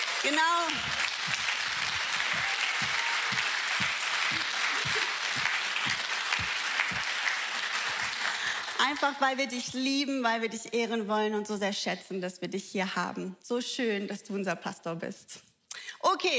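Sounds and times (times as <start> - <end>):
audience applause: 0.0 - 9.1
speech: 0.2 - 1.4, 8.9 - 15.5, 16.1 - 16.3.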